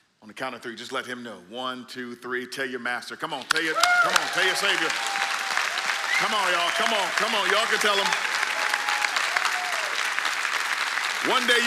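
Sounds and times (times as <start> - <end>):
speech: 0.2 - 5.2, 6.2 - 8.2, 11.2 - 11.6
church service congregation polite round of applause: 3.4 - 11.6.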